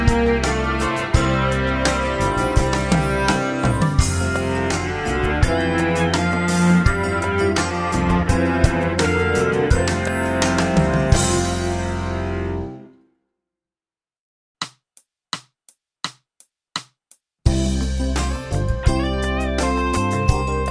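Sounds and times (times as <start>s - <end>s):
strings in F major: 0.0s - 12.9s, 17.5s - 20.6s.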